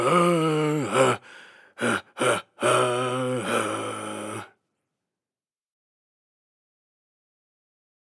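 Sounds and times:
person humming at a mine: 0.0s - 4.5s.

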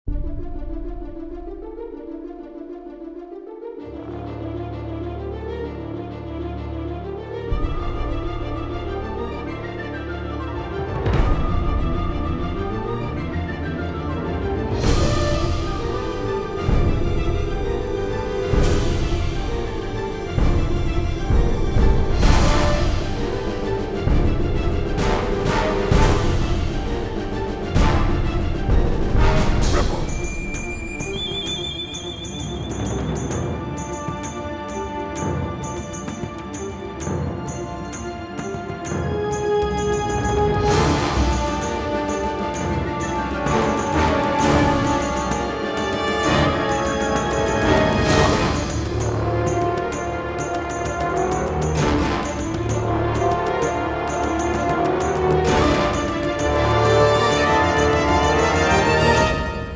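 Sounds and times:
high suspense orchestra: 0.0s - 59.7s.

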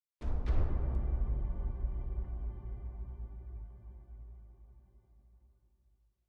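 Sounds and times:
big drums: 0.2s - 3.4s.

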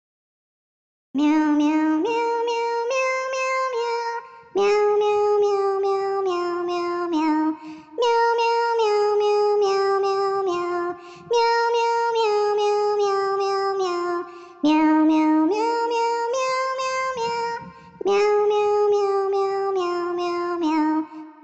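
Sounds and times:
person singing: 1.2s - 21.4s.

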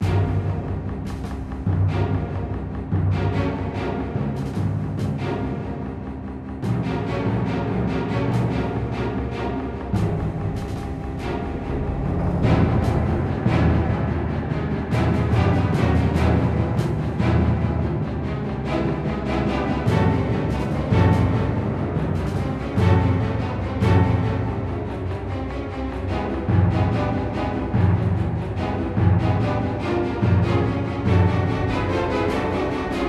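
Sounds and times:
battle music: 0.0s - 33.0s.

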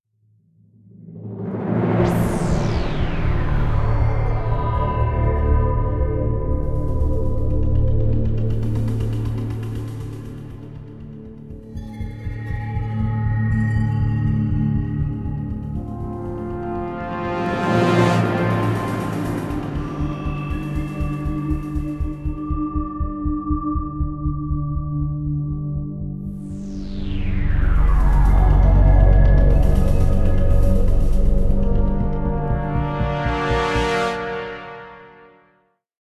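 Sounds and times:
tension music: 0.9s - 35.4s.

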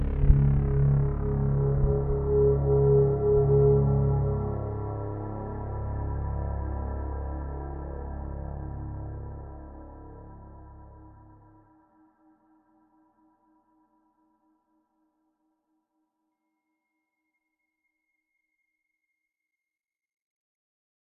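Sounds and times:
trailer music: 0.0s - 11.5s.

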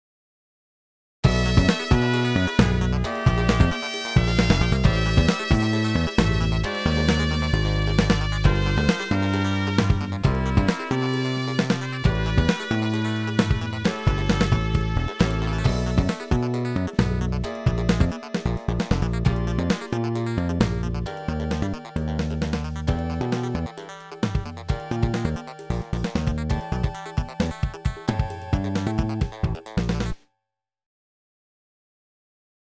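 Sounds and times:
breakbeat drums: 1.2s - 30.2s.

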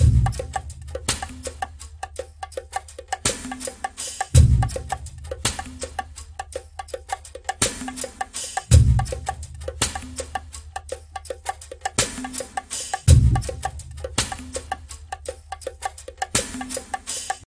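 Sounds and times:
jungle level music: 0.0s - 17.4s.

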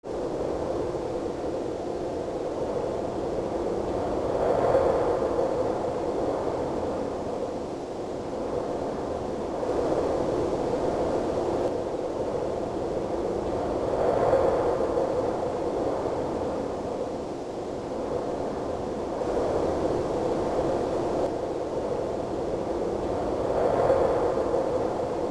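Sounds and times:
wind: 0.0s - 25.2s.

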